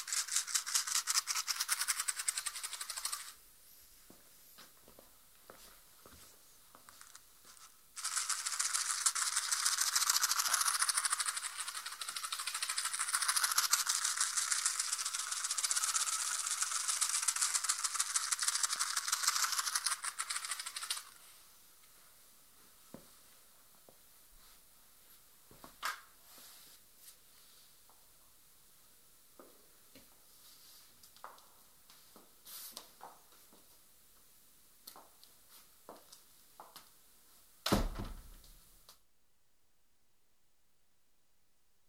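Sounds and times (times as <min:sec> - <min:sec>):
matchbox handled in binaural recording: 0:00.0 - 0:03.4, 0:07.0 - 0:21.2.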